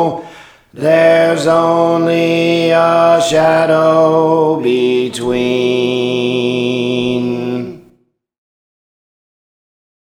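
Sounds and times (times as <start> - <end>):
alto voice singing a praise song: 0.0 - 8.0.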